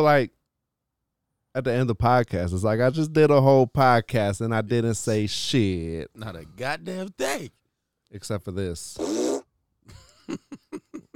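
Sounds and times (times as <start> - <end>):
speech: 0.0 - 0.4, 1.6 - 9.2, 9.9 - 10.6
fart noise: 9.0 - 9.4.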